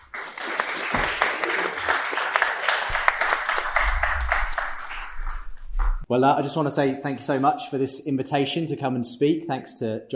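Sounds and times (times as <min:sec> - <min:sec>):
crowd applauding: 0:00.0 - 0:06.0
speech: 0:06.1 - 0:10.1.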